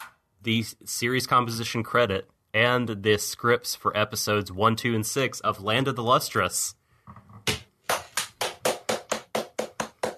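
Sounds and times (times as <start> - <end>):
speech: 0.4 - 7.2
hand clapping: 7.5 - 10.1.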